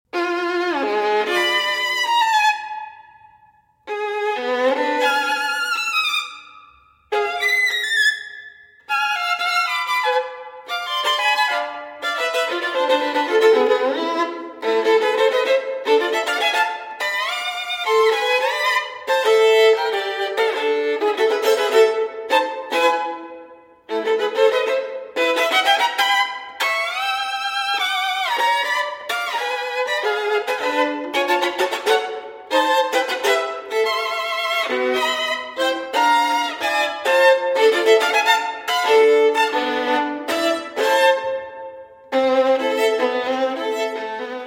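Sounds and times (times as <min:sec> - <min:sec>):
solo violin sonata in A minor: 0:00.0 - 0:44.4.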